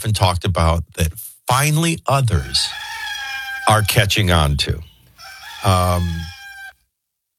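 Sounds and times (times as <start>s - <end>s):
speech: 0.0s - 2.9s, 3.7s - 4.9s, 5.6s - 6.4s
rooster crowing: 2.3s - 6.8s.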